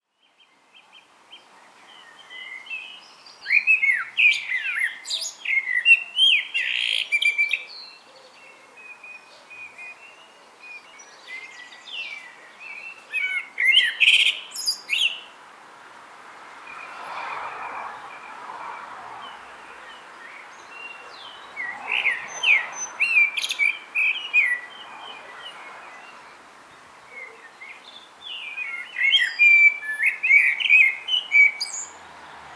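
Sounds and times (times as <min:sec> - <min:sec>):
common blackbird singing: 0:01.9 - 0:15.3, 0:19.2 - 0:26.4, 0:27.0 - 0:32.0.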